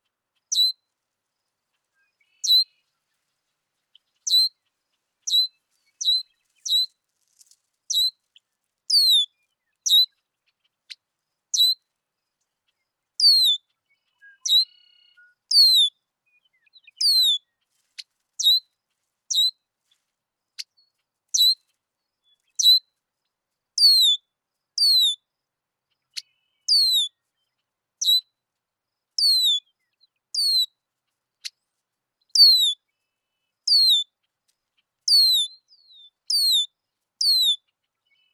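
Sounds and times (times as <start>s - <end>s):
Red-winged Blackbird calling: 8.9s - 10.2s, 13.2s - 15.9s, 16.5s - 17.5s, 23.8s - 24.2s, 24.8s - 25.2s, 26.2s - 27.1s, 29.2s - 29.7s, 30.4s - 30.7s, 32.3s - 32.8s, 33.7s - 34.1s, 35.1s - 38.3s.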